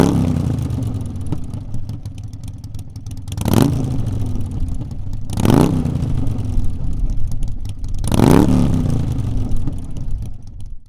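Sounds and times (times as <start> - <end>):
Sportster 1200 motorcycle with slip-on exhausts revving: 0.0 - 10.8.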